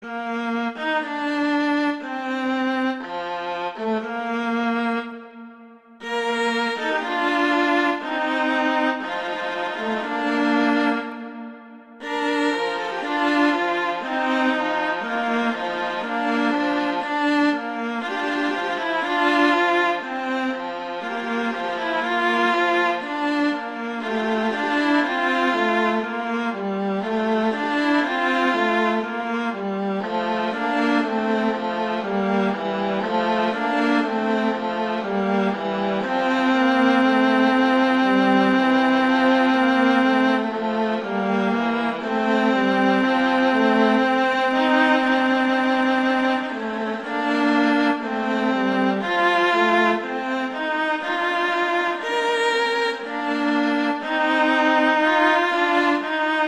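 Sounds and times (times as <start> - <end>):
largo classical piece: 0.0 - 56.4.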